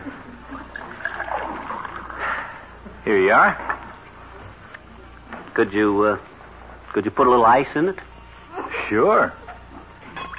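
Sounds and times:
water poured into a glass: 0.6 - 2.4
speech: 3.1 - 3.7, 5.6 - 6.3, 6.9 - 8.1, 8.9 - 9.4.

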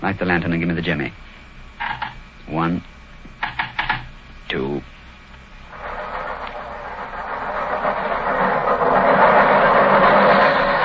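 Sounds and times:
speech: 0.0 - 1.4, 2.5 - 2.9, 4.5 - 5.0
underground train passing by window: 5.7 - 10.8.

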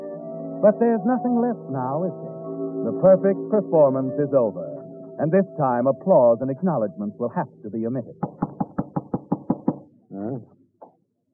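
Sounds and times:
speech: 0.6 - 8.4, 10.2 - 10.6
knocking on a door: 8.2 - 9.8.

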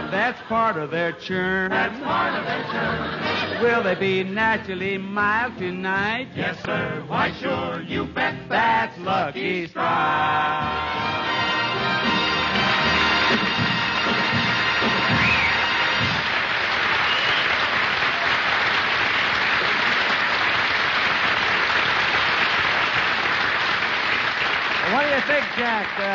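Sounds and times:
speech: 0.1 - 11.3, 24.9 - 26.1
studio audience applause: 12.3 - 26.1.

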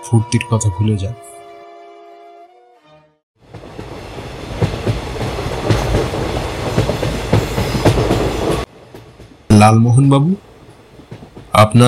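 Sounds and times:
speech: 0.1 - 1.3, 9.6 - 10.5, 11.6 - 11.8
train running on rails with clickety-clack wheel beats: 3.4 - 11.8.

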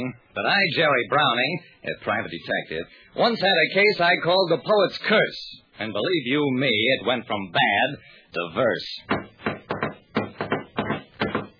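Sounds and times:
speech: 0.0 - 9.2
knocking on a door: 9.1 - 11.5.

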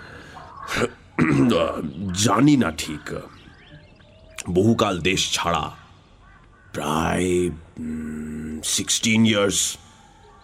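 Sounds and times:
man clearing his throat: 0.8 - 1.8
speech: 0.8 - 3.4, 4.4 - 5.8, 6.8 - 9.8.

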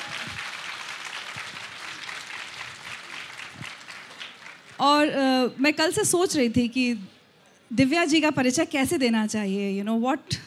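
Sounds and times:
loud applause: 0.0 - 4.8
speech: 4.8 - 10.4.

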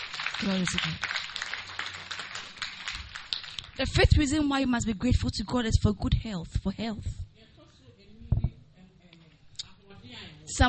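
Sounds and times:
audience clapping: 0.0 - 3.9
speech: 0.4 - 1.1, 3.8 - 7.2.

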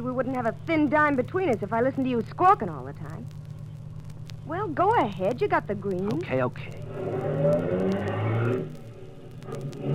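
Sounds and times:
speech: 0.0 - 3.4, 4.5 - 8.8
car engine droning and revving while driving: 6.8 - 9.9.

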